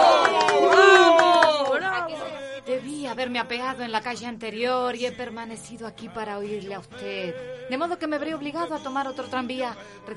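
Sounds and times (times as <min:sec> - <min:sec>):
tram passengers clapping: 0:00.0 - 0:02.0
tram passengers cheering and shouting in a radio drama: 0:00.0 - 0:02.5
speech: 0:03.2 - 0:10.1.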